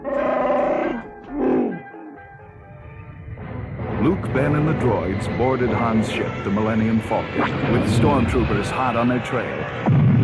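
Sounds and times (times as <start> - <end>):
Wookiee roar: 0.0 - 2.2
speech: 4.0 - 10.1.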